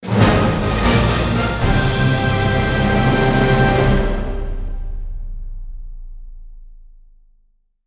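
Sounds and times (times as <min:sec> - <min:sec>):
free spin outro music: 0:00.0 - 0:05.4.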